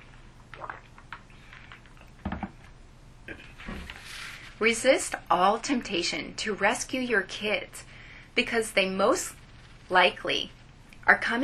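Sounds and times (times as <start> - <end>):
sipping water: 0.0 - 2.6
speech: 4.6 - 11.4.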